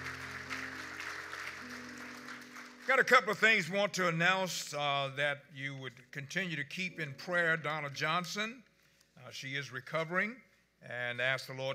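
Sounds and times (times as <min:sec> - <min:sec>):
church congregation clapping their hands in praise: 0:00.0 - 0:03.9
speech: 0:02.9 - 0:08.7, 0:09.3 - 0:11.7.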